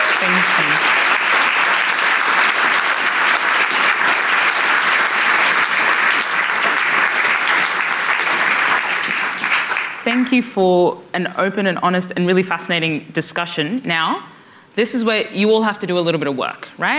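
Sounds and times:
audience applause: 0.0s - 10.3s
speech: 0.2s - 1.0s, 10.4s - 16.9s.

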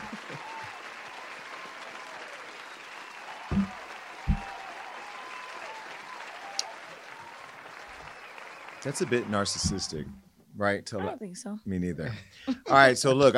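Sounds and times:
applause: 0.0s - 10.0s
speech: 8.8s - 13.3s.

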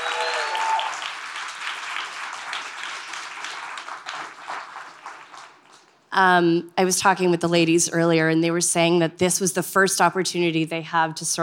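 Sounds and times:
audience applause: 0.0s - 6.0s
speech: 6.2s - 11.4s.

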